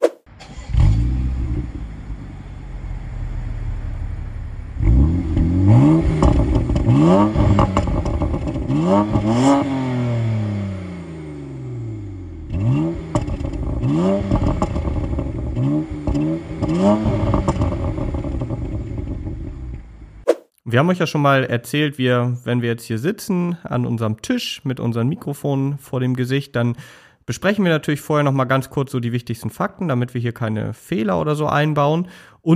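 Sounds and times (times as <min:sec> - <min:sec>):
unusual BMW car engine idling and revving: 0:00.3 - 0:20.2
speech: 0:20.8 - 0:32.5.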